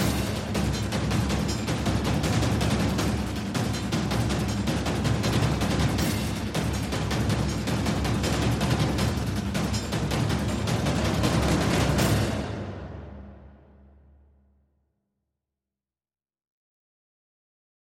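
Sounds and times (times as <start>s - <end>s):
war drum beat: 0.0s - 13.3s.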